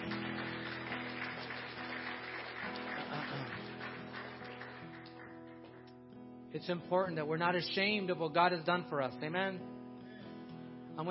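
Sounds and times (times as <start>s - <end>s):
audience clapping: 0.0s - 6.1s
speech: 6.5s - 9.8s.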